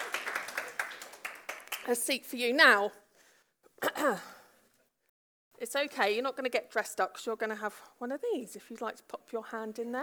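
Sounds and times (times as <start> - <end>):
audience applause: 0.0 - 1.9
speech: 1.8 - 3.0, 3.8 - 4.3, 5.6 - 10.0.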